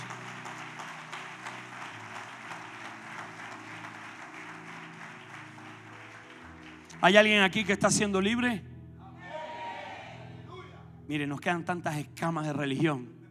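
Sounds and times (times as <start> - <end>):
audience applauding: 0.0 - 8.0
speech: 7.0 - 8.7, 11.1 - 13.2.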